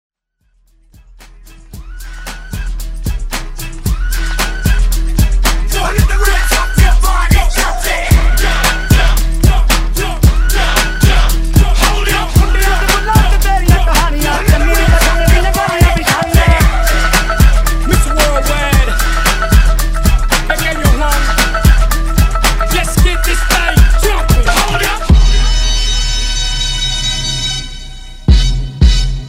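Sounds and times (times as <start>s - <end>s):
mashup music: 0.5s - 29.2s.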